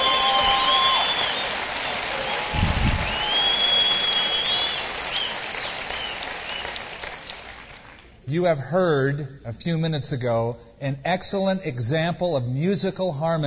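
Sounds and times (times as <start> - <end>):
high whistles: 0.0 - 7.6
audience applause: 0.0 - 8.1
speech: 8.4 - 13.4.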